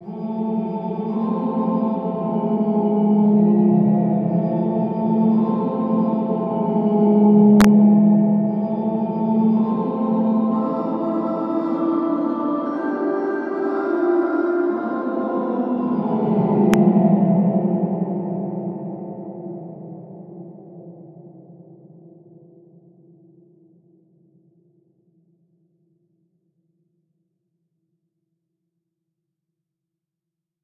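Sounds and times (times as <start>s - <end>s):
spooky music: 0.0s - 20.7s.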